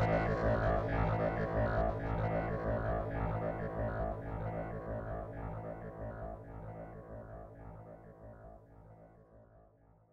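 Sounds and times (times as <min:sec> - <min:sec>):
wavetable synthesizer: 0:00.0 - 0:09.1.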